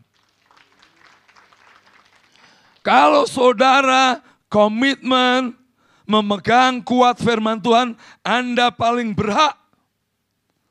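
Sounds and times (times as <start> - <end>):
audience applauding: 0.0 - 3.2
speech: 2.8 - 9.6.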